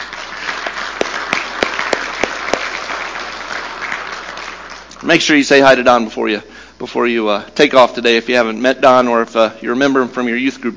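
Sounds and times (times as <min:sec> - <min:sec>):
audience applause welcoming a guest: 0:00.0 - 0:05.0
speech: 0:05.0 - 0:10.7.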